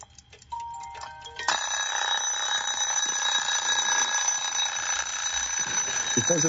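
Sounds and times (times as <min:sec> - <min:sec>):
Soviet mechanical alarm clock bell ringing: 0:00.6 - 0:06.4.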